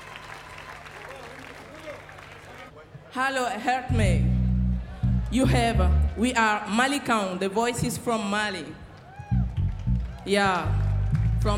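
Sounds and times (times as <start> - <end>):
audience applause: 0.0 - 2.8, 8.9 - 11.5
speech: 3.1 - 4.3, 5.3 - 8.8, 10.3 - 10.8.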